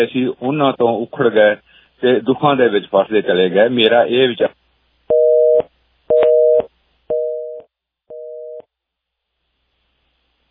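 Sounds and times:
speech: 0.0 - 4.6
telephone busy tone after a phone line disconnected: 5.1 - 8.6.

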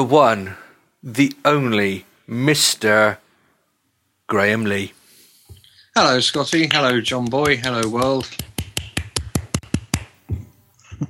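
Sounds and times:
speech: 0.0 - 3.2, 4.3 - 5.0, 6.0 - 8.5
one person clapping: 6.5 - 10.2.

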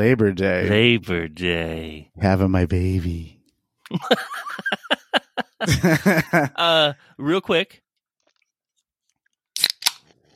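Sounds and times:
speech: 0.0 - 4.9, 5.6 - 7.8
laughter: 3.9 - 7.0
energy drink can being opened: 9.6 - 10.2.

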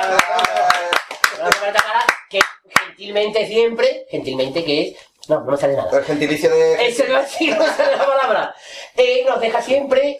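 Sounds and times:
speech: 0.0 - 0.7, 1.7 - 10.1
rhythmic clapping: 0.0 - 3.0
laughter: 7.1 - 8.6.

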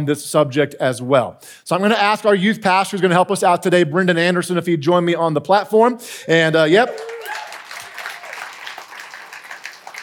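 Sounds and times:
speech: 0.0 - 7.5
church congregation applause for a youth pastor: 6.7 - 10.0.

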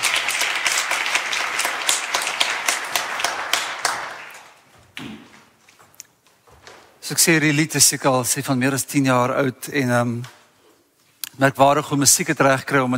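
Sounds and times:
audience applause: 0.0 - 4.7
speech: 7.1 - 10.4, 11.4 - 12.9.

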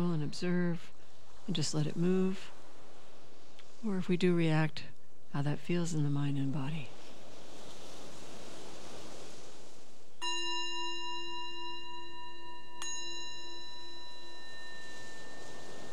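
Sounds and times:
speech: 0.0 - 2.6, 3.8 - 7.0
soft hiss: 0.0 - 15.9
meditation bell ringing: 10.2 - 15.9.

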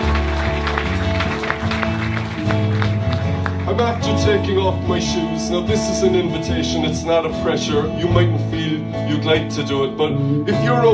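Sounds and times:
audience applause: 0.0 - 4.5
speech: 3.8 - 10.9.

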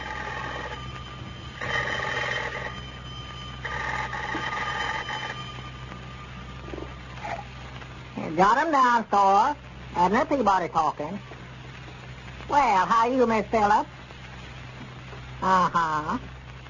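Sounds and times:
old-fashioned telephone bell ringing: 0.0 - 7.5
hum and faint hiss: 0.0 - 16.6
speech: 8.4 - 11.3, 12.5 - 14.0, 15.4 - 16.3.

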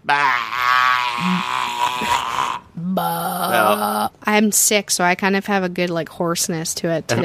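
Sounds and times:
speech: 0.0 - 0.4, 4.4 - 7.2
person imitating sheep bleat: 0.0 - 4.1.

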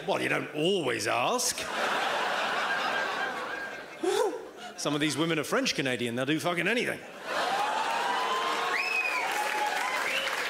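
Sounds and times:
speech: 0.0 - 2.1, 4.0 - 7.3
laughter: 1.5 - 4.8, 7.2 - 8.4
audience round of applause from women: 7.3 - 10.4.

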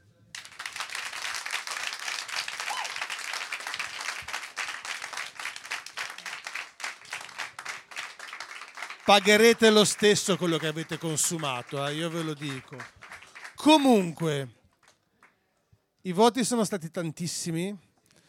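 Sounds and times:
audience applause: 0.3 - 15.0
speech: 9.1 - 13.0, 13.6 - 14.6, 16.0 - 17.9.

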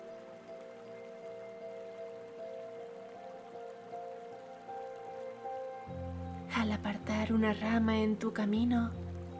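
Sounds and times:
spring water trickling: 0.0 - 9.3
speech: 6.6 - 9.0.

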